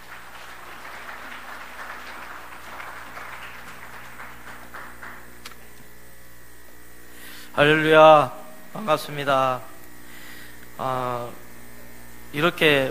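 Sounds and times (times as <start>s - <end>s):
audience applause: 0.0s - 5.8s
speech: 7.6s - 9.7s, 10.8s - 11.4s, 12.3s - 12.8s.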